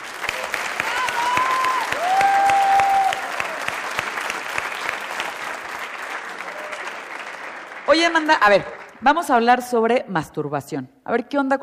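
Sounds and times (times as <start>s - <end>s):
audience applause: 0.0s - 9.0s
speech: 7.9s - 11.6s.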